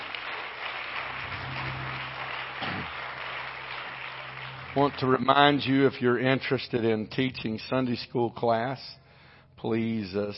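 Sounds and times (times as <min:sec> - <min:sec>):
audience hand clapping: 0:00.0 - 0:06.9
speech: 0:04.8 - 0:09.0, 0:09.6 - 0:10.3.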